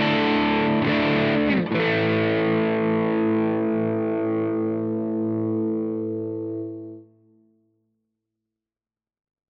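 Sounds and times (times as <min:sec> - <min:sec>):
crunch guitar chords in all positions: 0:00.0 - 0:07.2.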